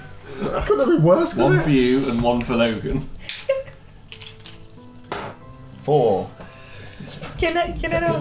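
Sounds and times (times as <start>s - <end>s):
speech: 0.4s - 3.2s, 5.9s - 6.4s, 7.4s - 8.2s
dice clattering across a hard surface: 4.1s - 4.7s.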